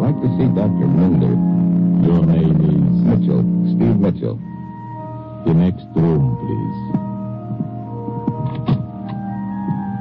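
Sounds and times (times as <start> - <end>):
speech: 0.2 - 4.5, 5.5 - 7.0
door clicking softly shut: 8.2 - 9.9.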